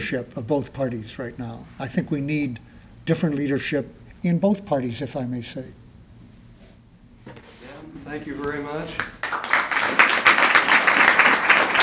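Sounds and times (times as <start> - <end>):
speech: 0.0 - 5.8, 8.1 - 9.2
crowd applauding: 8.2 - 11.8.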